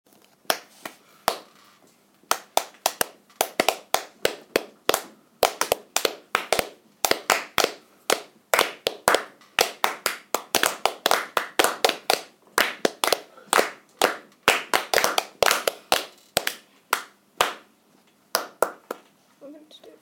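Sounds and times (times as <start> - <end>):
clapping: 2.3 - 17.6, 18.4 - 19.1.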